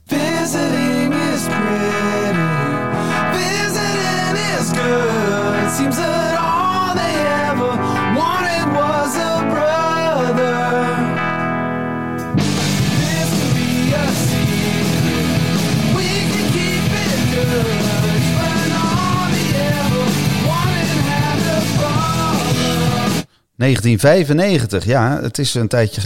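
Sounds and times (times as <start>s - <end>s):
rock song with sung vocals, guitars and drums: 0.0s - 23.3s
speech: 5.7s - 6.3s, 23.6s - 26.0s.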